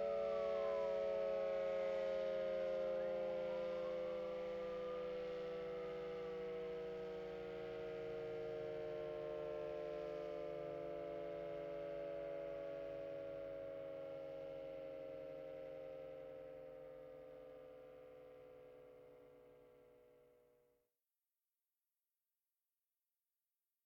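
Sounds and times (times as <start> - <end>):
alarm: 0.0 - 17.3.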